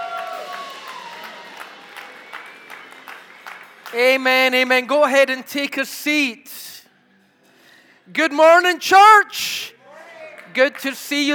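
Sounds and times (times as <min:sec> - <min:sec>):
church audience shouting and cheering: 0:00.0 - 0:03.4
speech: 0:03.9 - 0:06.6, 0:08.1 - 0:09.7, 0:10.6 - 0:11.3.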